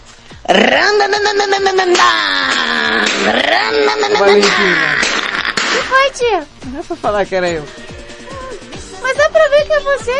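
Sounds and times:
speech: 0.5 - 5.0, 5.8 - 7.8, 9.4 - 10.1
voice imitating a motorcycle: 0.5 - 5.0.

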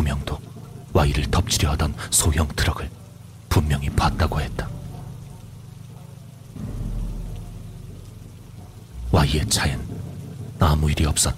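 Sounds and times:
steady rain: 0.0 - 11.3
speech: 1.0 - 3.0, 3.6 - 4.7, 9.1 - 9.9, 10.6 - 11.3
low rolling thunder: 3.8 - 11.3.

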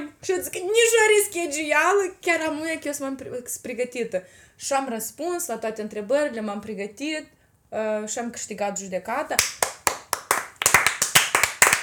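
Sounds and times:
speech: 0.2 - 9.7
hand clapping: 9.4 - 11.8.

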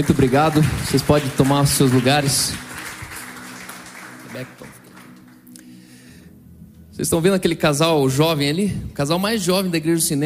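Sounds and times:
speech: 0.0 - 2.7, 4.4 - 4.7, 7.0 - 10.2
audience applause: 0.0 - 5.5.

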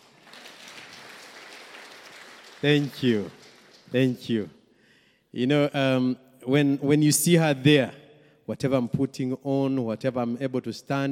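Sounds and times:
audience clapping: 0.0 - 4.4
speech: 2.6 - 4.6, 5.3 - 11.0.

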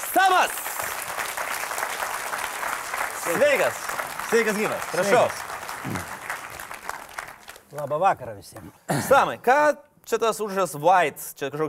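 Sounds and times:
TV studio audience clapping to welcome a guest: 0.0 - 8.6
speech: 0.2 - 0.7, 3.3 - 6.1, 7.7 - 11.6.

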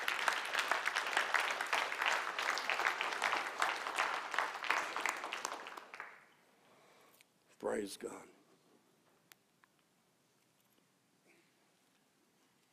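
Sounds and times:
crowd clapping: 0.0 - 6.4
speech: 7.7 - 8.3.

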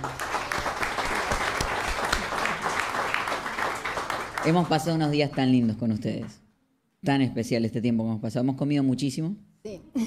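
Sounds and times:
speech: 0.0 - 0.2, 4.4 - 6.4, 7.0 - 10.0
audience applause: 0.0 - 5.1.

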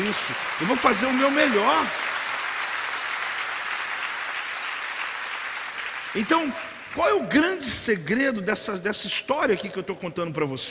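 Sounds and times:
audience applause: 0.0 - 7.7
speech: 0.1 - 2.1, 6.1 - 10.6.

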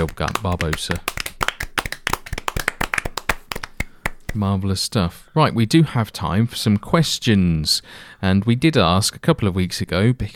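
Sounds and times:
speech: 0.0 - 1.2, 4.4 - 10.3
round of applause, hand clapping: 0.0 - 4.4.

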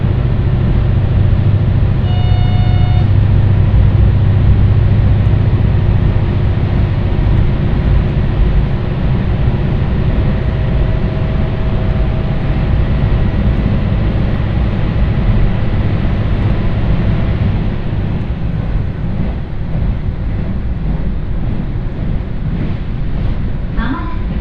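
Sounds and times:
faint humming whine: 0.0 - 18.3
Ibara Railway train running: 0.0 - 24.4
high ringing tone: 2.0 - 3.3.

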